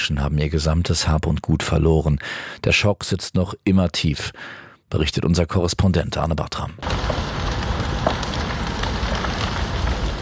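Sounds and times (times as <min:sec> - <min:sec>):
speech: 0:00.1 - 0:07.3
crackling flames driven by wind: 0:06.8 - 0:10.1.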